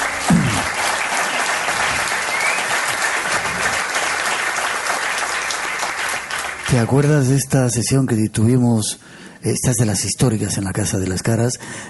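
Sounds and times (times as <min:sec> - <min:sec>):
audience applause: 0:00.0 - 0:07.2
speech: 0:06.8 - 0:11.8.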